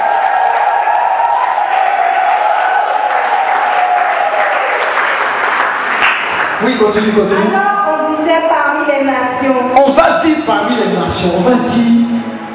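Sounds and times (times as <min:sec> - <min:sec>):
crowd cheering: 0:00.0 - 0:07.1
applause: 0:00.1 - 0:07.1
speech: 0:06.7 - 0:12.1.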